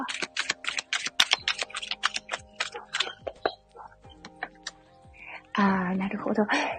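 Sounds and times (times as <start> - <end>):
tarot cards drawn from a deck: 0.0 - 3.5
speech: 5.6 - 6.7.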